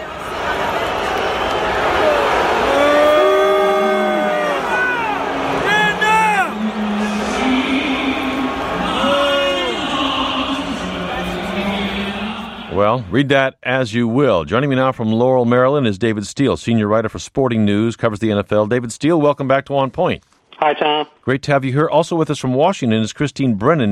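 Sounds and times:
New England Patriots fans booing: 0.0s - 12.7s
speech: 13.1s - 23.8s.

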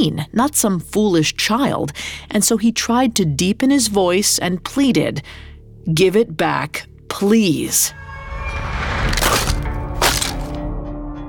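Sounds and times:
speech: 0.0s - 9.2s
wooden fiddle stomped and splintering: 9.1s - 10.6s.

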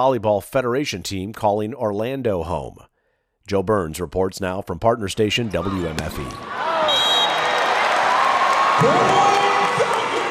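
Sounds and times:
speech: 0.0s - 2.9s, 3.5s - 6.6s, 8.8s - 9.2s
stadium crowd cheering at volleyball match: 5.4s - 10.3s.

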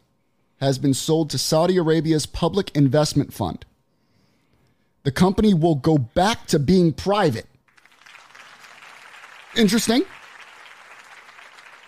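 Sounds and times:
speech: 0.6s - 3.7s, 5.0s - 7.5s, 9.6s - 10.2s
crowd applause sound effect: 7.7s - 11.8s.

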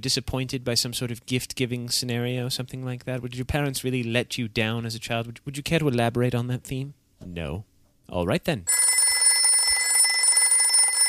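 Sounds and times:
speech: 0.0s - 8.9s
telephone ringing: 8.7s - 11.0s.

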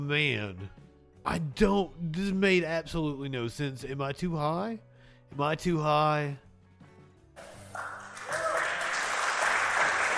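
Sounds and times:
speech: 0.0s - 6.4s
crowd applause: 7.6s - 10.1s.

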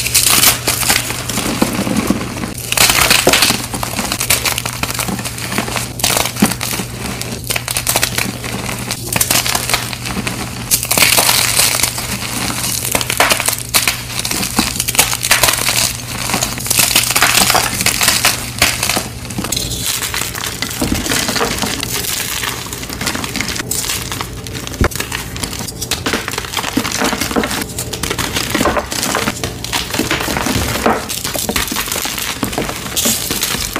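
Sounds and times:
crispy dyed chalk crunched and crumbled: 0.0s - 33.7s
low constant hum: 17.9s - 32.8s.

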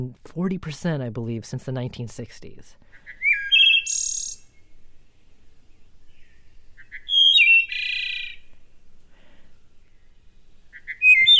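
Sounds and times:
speech: 0.0s - 3.1s
wood thrush calling: 2.8s - 11.3s.

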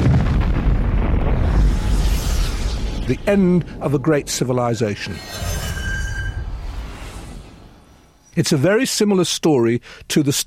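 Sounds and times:
roaring explosion of the planet Krypton: 0.0s - 7.9s
speech: 3.1s - 5.6s, 8.4s - 10.4s.

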